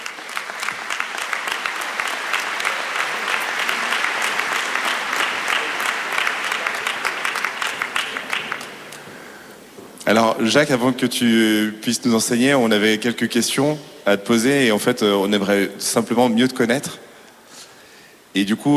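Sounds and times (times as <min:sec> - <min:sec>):
room full of people clapping: 0:00.0 - 0:09.5
speech: 0:10.1 - 0:17.0, 0:18.3 - 0:18.7.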